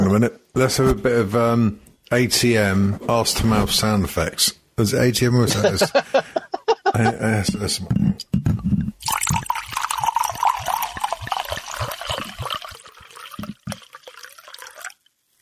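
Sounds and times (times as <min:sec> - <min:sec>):
speech: 0:00.1 - 0:08.7
laughter: 0:05.4 - 0:07.4
urine trickling into a cup: 0:08.9 - 0:15.4.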